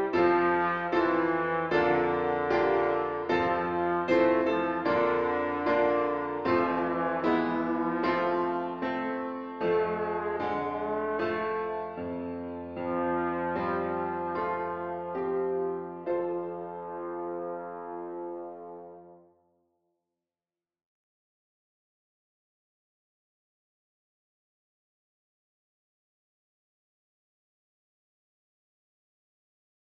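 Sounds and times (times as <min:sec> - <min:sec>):
piano: 0:00.0 - 0:19.3
trombone: 0:00.0 - 0:19.3.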